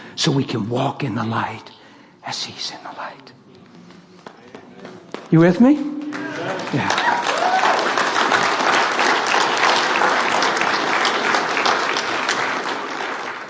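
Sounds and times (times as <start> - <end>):
speech: 0.2 - 3.5, 4.8 - 7.6
crowd applause: 6.0 - 13.4.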